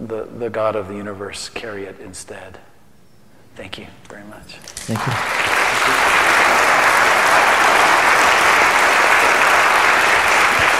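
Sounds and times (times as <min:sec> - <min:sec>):
speech: 0:00.1 - 0:02.7, 0:03.6 - 0:06.1
audience applause: 0:04.9 - 0:10.7.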